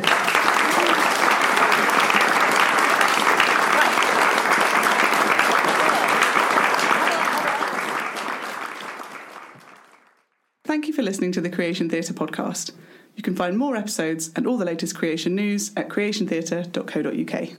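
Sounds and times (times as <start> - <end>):
audience applause: 0.0 - 10.4
speech: 11.0 - 17.5.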